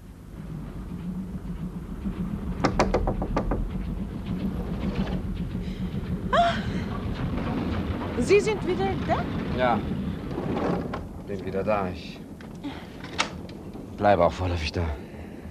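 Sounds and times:
moving railway carriage rumble: 0.0 - 15.5
knocking on a compartment door inside a train: 2.6 - 3.8
speech: 8.3 - 10.0, 10.6 - 12.2, 14.0 - 15.0.

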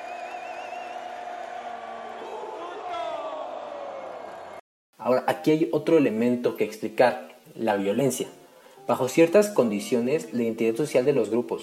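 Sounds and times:
crowd at a Mexican football stadium shouting a chant: 0.0 - 4.6
speech: 5.0 - 11.6.

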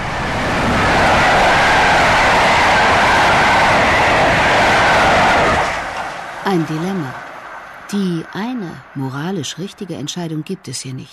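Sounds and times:
train rushing along the tracks: 0.0 - 11.1
speech: 6.5 - 6.8, 7.9 - 11.1.

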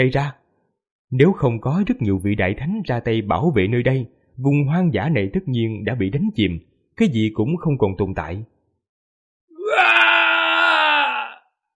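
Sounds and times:
speech: 0.0 - 0.4, 1.1 - 8.5
loud anguished scream of defiance: 9.5 - 11.6.

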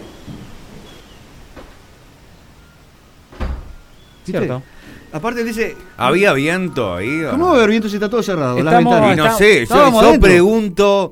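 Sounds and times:
low rumbling hiss: 0.0 - 11.1
door shutting inside a house with a heavy thud: 3.3 - 3.8
speech: 4.3 - 11.1.

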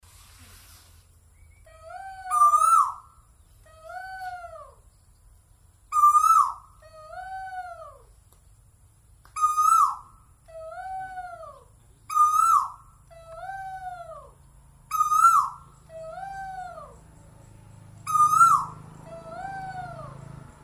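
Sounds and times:
faint hum: 0.9 - 20.6
bird calls: 1.3 - 8.4, 9.2 - 20.6.

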